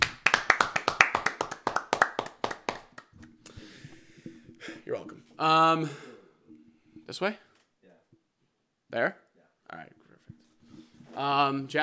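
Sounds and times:
few people clapping for the engineer: 0.0s - 3.3s
speech: 4.9s - 6.1s, 7.1s - 7.5s, 8.9s - 10.0s, 11.2s - 11.8s.

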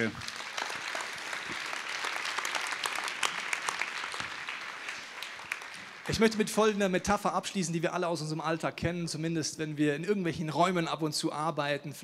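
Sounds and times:
speech: 0.0s - 0.3s, 6.1s - 12.0s
audience applause: 0.0s - 6.8s.

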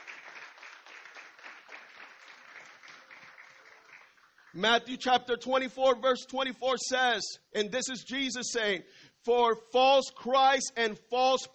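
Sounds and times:
audience applause: 0.0s - 4.6s
speech: 4.5s - 11.5s.

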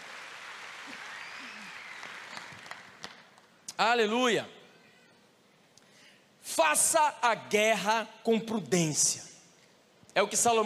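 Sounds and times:
audience applauding: 0.0s - 3.6s
speech: 3.8s - 4.6s, 6.6s - 9.3s, 10.2s - 10.6s.

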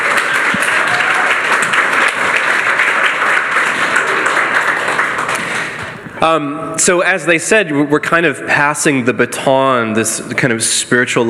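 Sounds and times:
crowd applause: 0.0s - 6.3s
speech: 6.2s - 11.2s.

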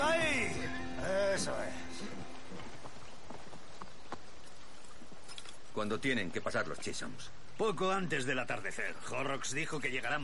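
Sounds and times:
horses galloping through a forest: 0.0s - 5.5s
speech: 1.4s - 1.8s, 5.8s - 10.2s.

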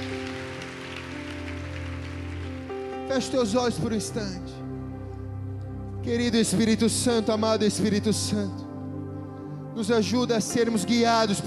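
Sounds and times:
audience applauding loudly: 0.0s - 3.4s
speech: 3.1s - 4.6s, 6.0s - 8.6s, 9.8s - 11.4s.

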